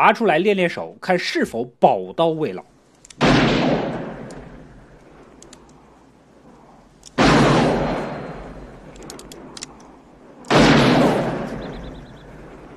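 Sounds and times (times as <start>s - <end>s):
speech: 0.0s - 2.7s
double-barreled shotgun blasts in a western film: 3.2s - 4.7s, 7.2s - 9.6s, 10.4s - 12.7s.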